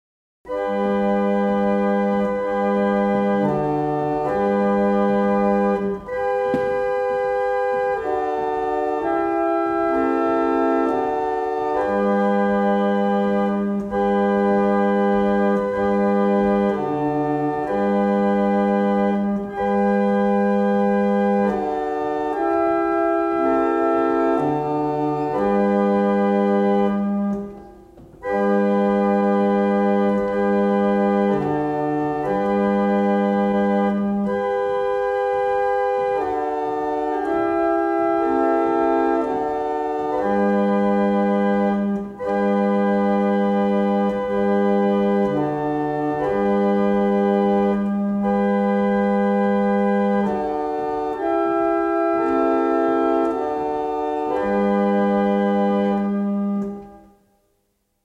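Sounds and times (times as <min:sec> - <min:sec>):
barrel organs playing a single chant: 0:00.5 - 0:57.3.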